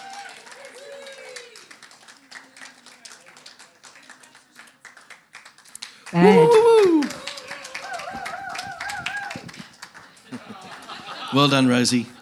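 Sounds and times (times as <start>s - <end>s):
audience clapping: 0.0s - 12.2s
speech: 6.1s - 6.6s, 11.4s - 12.2s.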